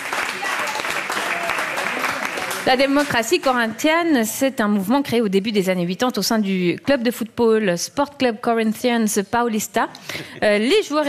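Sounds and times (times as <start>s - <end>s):
audience applause after a correct answer in a football quiz: 0.0s - 3.3s
speech: 2.6s - 11.0s.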